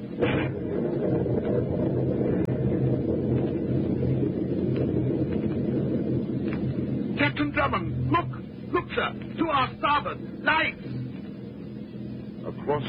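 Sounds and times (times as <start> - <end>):
storm wind at sea: 0.0 - 12.6
speech: 7.5 - 8.2, 9.0 - 10.9, 12.5 - 12.8.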